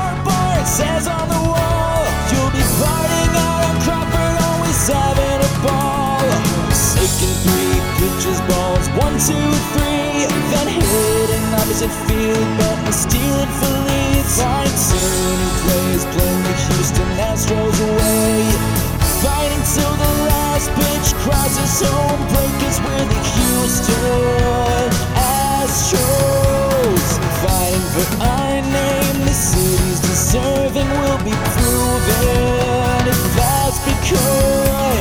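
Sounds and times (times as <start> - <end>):
acoustic karaoke harmony: 0.0 - 34.9.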